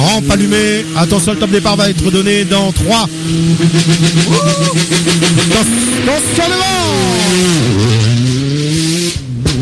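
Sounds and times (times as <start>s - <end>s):
rally car engine revving: 0.0s - 9.6s
speech: 0.2s - 8.4s.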